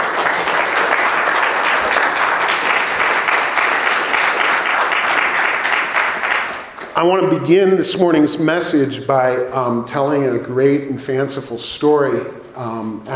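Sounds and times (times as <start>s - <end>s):
audience applause: 0.0s - 7.2s
speech: 7.0s - 13.1s.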